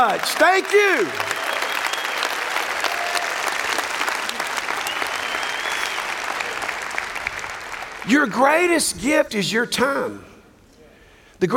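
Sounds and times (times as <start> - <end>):
speech: 0.0 - 1.4, 8.0 - 10.3
audience applause: 0.0 - 8.5.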